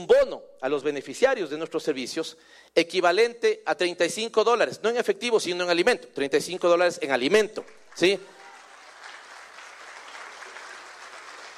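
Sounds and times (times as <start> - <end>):
speech: 0.0 - 8.4
audience applause: 7.7 - 11.5.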